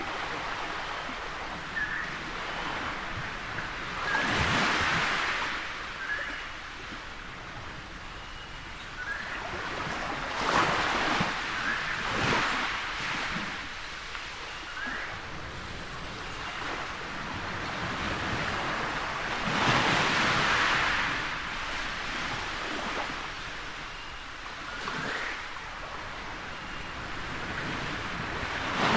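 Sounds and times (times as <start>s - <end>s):
ocean waves on a tropical coastline: 0.0s - 28.9s.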